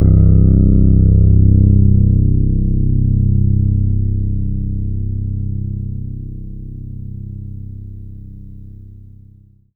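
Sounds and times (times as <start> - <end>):
synth note C1: 0.0 - 9.2.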